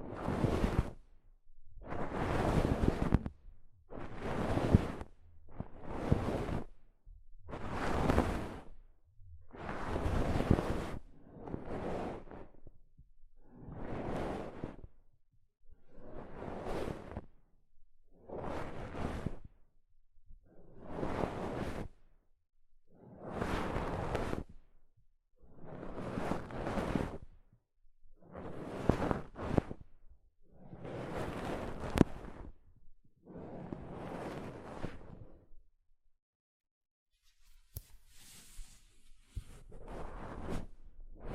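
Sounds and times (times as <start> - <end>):
soft fabric brushing across a microphone: 0.0 - 1.1, 1.7 - 6.8, 7.4 - 12.7, 13.4 - 14.9, 15.8 - 17.3, 18.3 - 19.6, 20.5 - 22.0, 23.1 - 24.6, 25.5 - 27.3, 28.2 - 30.0, 30.6 - 32.6, 33.3 - 35.6, 37.2 - 41.3.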